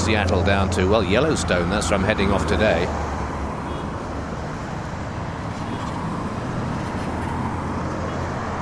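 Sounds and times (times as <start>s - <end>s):
I-90 highway traffic passing: 0.0s - 8.6s
speech: 0.1s - 3.2s.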